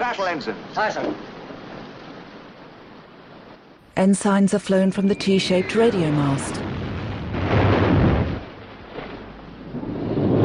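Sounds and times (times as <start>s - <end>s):
speech: 0.1s - 1.4s, 4.0s - 6.7s
naval shells exploding in water: 6.1s - 10.4s.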